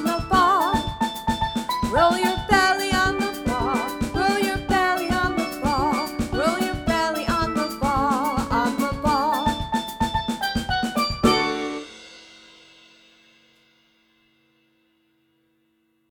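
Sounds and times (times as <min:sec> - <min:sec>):
samba song: 0:00.0 - 0:12.6.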